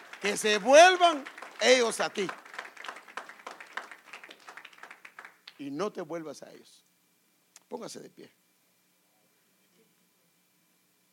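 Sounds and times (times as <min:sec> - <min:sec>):
audience applause: 0:00.0 - 0:05.6
speech: 0:00.2 - 0:02.4, 0:05.6 - 0:06.8, 0:07.7 - 0:08.4.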